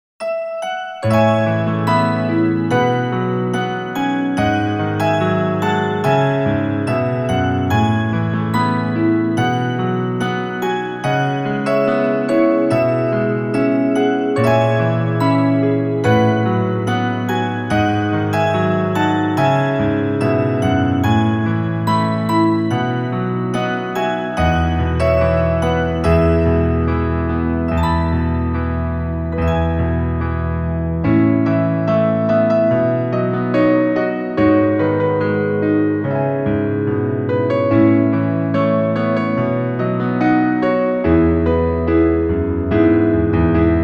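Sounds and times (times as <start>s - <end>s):
piano: 0.2s - 43.8s.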